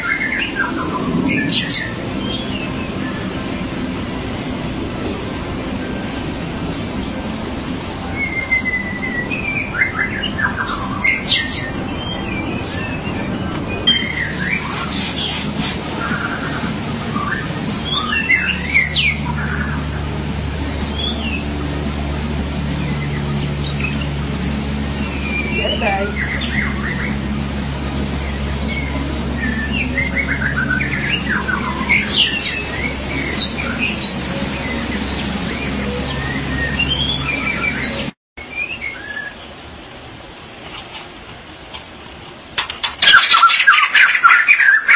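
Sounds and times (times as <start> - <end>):
magpie-robin or shama singing: 0.0 - 3.7, 8.0 - 20.0, 22.7 - 39.5, 42.8 - 44.9
low hum: 0.0 - 38.2.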